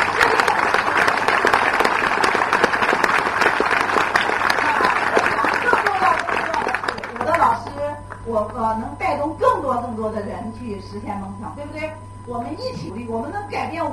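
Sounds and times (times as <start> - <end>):
audience applause: 0.0 - 7.4
speech: 8.4 - 13.9.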